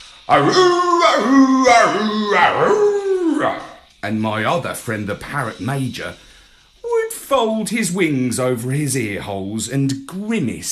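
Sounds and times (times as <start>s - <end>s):
dog howling: 0.3s - 3.8s
speech: 0.3s - 6.3s, 7.3s - 10.6s.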